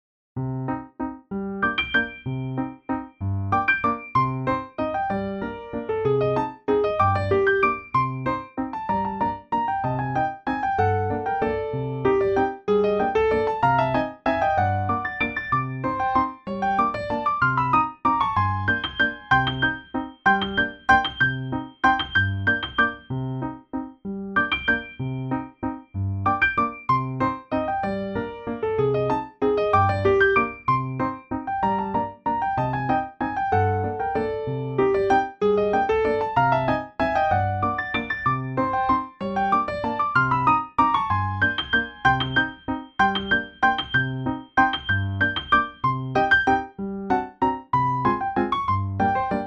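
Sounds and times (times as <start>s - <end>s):
piano duet waltz: 0.4s - 49.4s.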